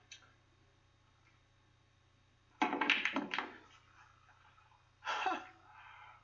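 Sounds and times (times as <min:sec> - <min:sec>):
faint low hum: 0:00.0 - 0:06.2
pool balls clattering on a split shot: 0:02.6 - 0:03.9.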